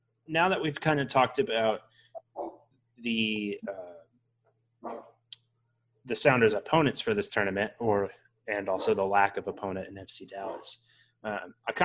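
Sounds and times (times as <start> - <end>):
speech: 0.3 - 3.9, 6.0 - 11.8
dog barking and yipping: 4.8 - 5.1, 8.7 - 9.0.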